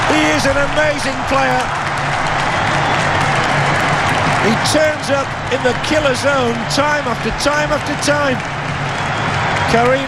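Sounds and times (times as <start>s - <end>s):
World Cup football crowd cheering a Denmark goal: 0.0s - 10.0s
speech: 0.4s - 2.2s, 4.4s - 8.8s, 9.7s - 10.0s.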